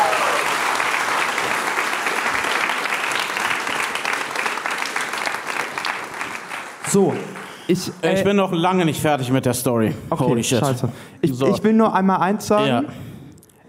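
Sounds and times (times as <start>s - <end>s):
audience applause: 0.0s - 7.9s
speech: 6.9s - 13.0s.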